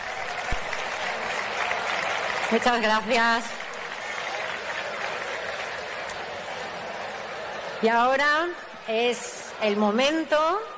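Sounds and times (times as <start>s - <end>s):
crowd applauding: 0.0s - 7.8s
speech: 2.5s - 3.6s, 7.8s - 10.7s.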